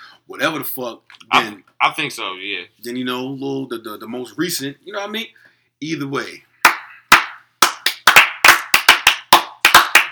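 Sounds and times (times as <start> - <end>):
speech: 0.3 - 6.5
loud sharp hand claps in an uneven rhythm: 6.6 - 10.1.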